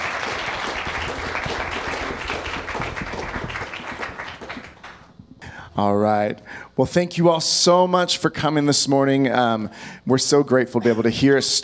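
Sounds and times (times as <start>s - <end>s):
crowd applauding: 0.0s - 5.2s
speech: 5.8s - 11.6s.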